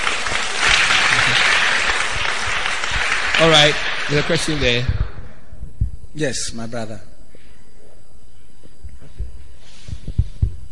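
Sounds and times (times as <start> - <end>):
audience clapping at a Christian talk: 0.0 - 4.9
speech: 3.4 - 5.0, 6.2 - 7.1.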